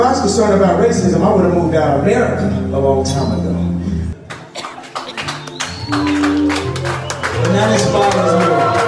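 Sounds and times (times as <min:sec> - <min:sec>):
speech: 0:00.1 - 0:03.5, 0:07.6 - 0:08.8
two people clapping: 0:04.1 - 0:08.8.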